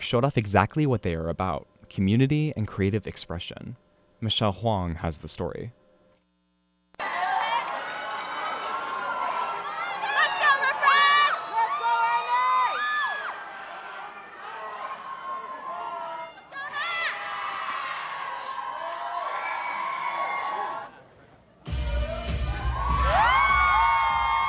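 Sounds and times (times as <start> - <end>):
speech: 0.1 - 5.8
audience cheering and screaming at a dance show: 7.0 - 21.0, 21.7 - 24.4.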